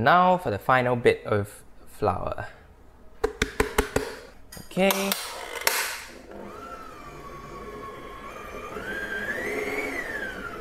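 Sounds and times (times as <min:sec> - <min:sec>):
speech: 0:00.0 - 0:02.6, 0:04.6 - 0:05.3
electric mixer beating cake batter for a gula melaka cake: 0:05.4 - 0:10.6.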